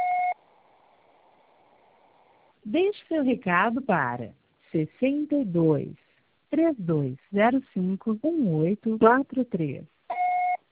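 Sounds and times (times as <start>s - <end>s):
electronic beep from a Brazilian phone voicemail system: 0.0s - 0.4s, 10.1s - 10.6s
faint phone line hiss: 0.0s - 8.4s
speech: 2.6s - 9.9s.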